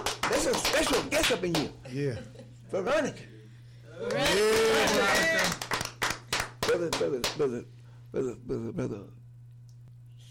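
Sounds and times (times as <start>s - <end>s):
audience clapping: 0.0s - 1.8s, 4.0s - 7.6s
speech: 0.4s - 3.3s, 4.0s - 5.6s, 6.8s - 9.2s.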